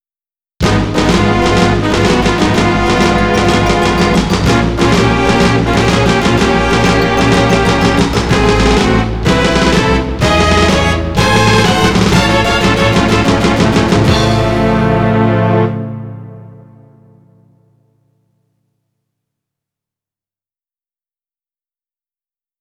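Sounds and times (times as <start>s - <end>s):
game over jingle arranged for CM-64: 1.0s - 15.3s.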